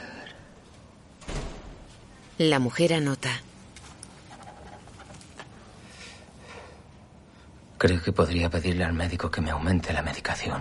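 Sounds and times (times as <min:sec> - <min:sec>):
forehead banging against a door: 0:01.2 - 0:01.9
speech: 0:02.4 - 0:03.5, 0:07.8 - 0:10.5.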